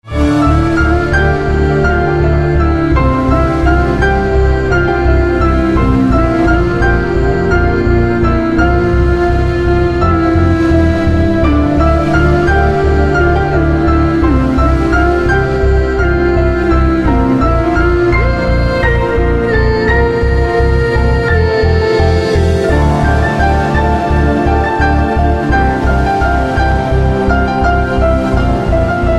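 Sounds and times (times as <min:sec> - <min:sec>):
magical tune: 0:00.0 - 0:29.1.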